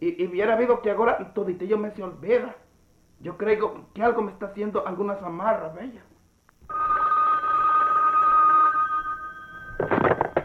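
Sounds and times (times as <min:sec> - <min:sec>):
speech: 0:00.0 - 0:02.6, 0:03.2 - 0:06.1
telephone ringing: 0:06.7 - 0:10.4.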